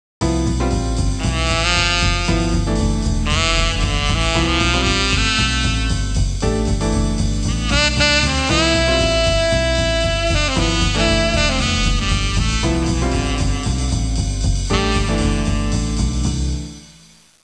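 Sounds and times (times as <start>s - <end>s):
jazz music ringtone: 0.4s - 17.1s.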